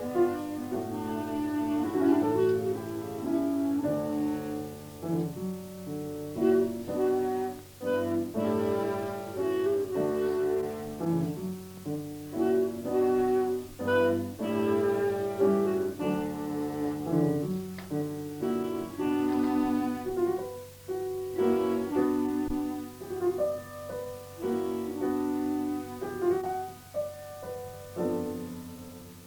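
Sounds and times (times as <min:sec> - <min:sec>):
trio for clarinet, viola and piano: 0:00.0 - 0:29.2.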